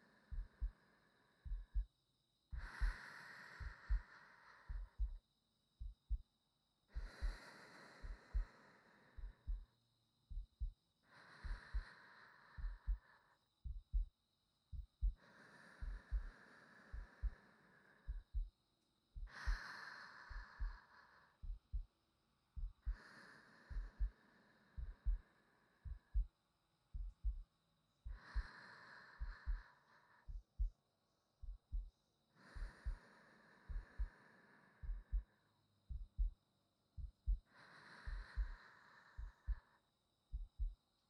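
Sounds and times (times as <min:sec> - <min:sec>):
sleeping breathing: 0:00.0 - 0:01.9, 0:02.5 - 0:05.2, 0:06.9 - 0:09.7, 0:11.1 - 0:13.4, 0:15.0 - 0:18.5, 0:19.2 - 0:21.9, 0:22.6 - 0:26.3, 0:28.1 - 0:30.4, 0:32.3 - 0:36.4, 0:37.0 - 0:39.8
new wife's heartbeat: 0:00.3 - 0:00.8, 0:01.4 - 0:01.9, 0:02.5 - 0:03.0, 0:03.6 - 0:04.1, 0:04.7 - 0:05.2, 0:05.8 - 0:06.3, 0:07.0 - 0:07.4, 0:08.0 - 0:08.5, 0:09.2 - 0:09.7, 0:10.3 - 0:10.8, 0:11.4 - 0:11.9, 0:12.6 - 0:13.0, 0:13.6 - 0:15.2, 0:15.8 - 0:17.4, 0:18.0 - 0:18.6, 0:19.2 - 0:19.7, 0:20.3 - 0:20.8, 0:21.4 - 0:21.9, 0:22.6 - 0:23.0, 0:23.7 - 0:24.2, 0:24.8 - 0:28.6, 0:29.2 - 0:30.8, 0:31.4 - 0:33.1, 0:33.7 - 0:34.2, 0:34.8 - 0:35.3, 0:35.9 - 0:36.4, 0:37.0 - 0:39.7, 0:40.3 - 0:40.8.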